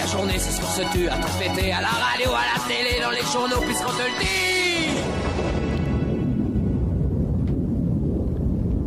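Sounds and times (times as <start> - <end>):
speech: 0.1 - 5.5
loud explosion with deep rumbling roar: 4.5 - 8.8.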